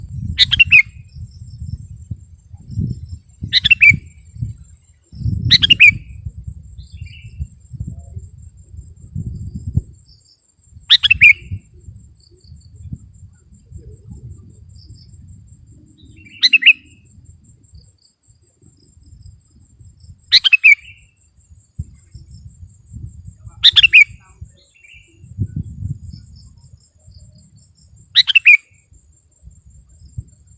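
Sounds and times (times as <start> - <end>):
sooty-headed bulbul bubbly phrases: 0.2 - 7.8, 10.9 - 17.8, 20.0 - 28.9.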